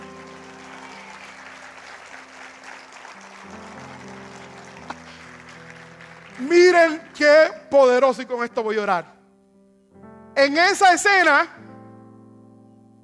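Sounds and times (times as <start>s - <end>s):
audience applause: 0.0s - 7.3s
speech: 6.4s - 9.2s, 10.4s - 11.6s.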